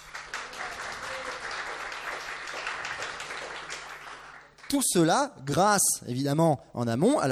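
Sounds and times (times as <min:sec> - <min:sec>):
audience applause: 0:00.0 - 0:04.8
speech: 0:04.7 - 0:07.3.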